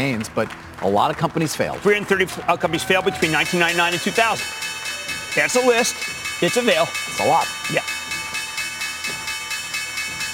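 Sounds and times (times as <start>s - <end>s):
speech: 0.0s - 4.7s, 5.3s - 7.9s
stock exchange opening bell ringing: 3.2s - 10.3s.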